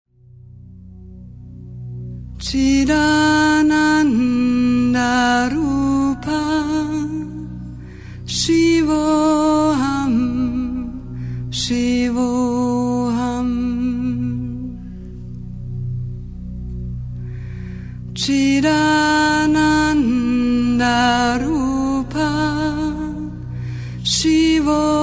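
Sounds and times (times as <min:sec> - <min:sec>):
mantra chanting: 0:02.4 - 0:15.2, 0:18.1 - 0:25.0.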